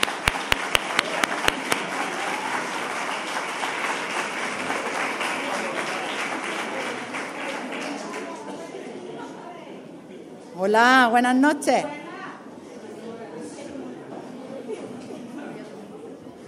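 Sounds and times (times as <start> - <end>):
audience applause for the volunteer: 0.0 - 8.6
speech: 10.6 - 12.0.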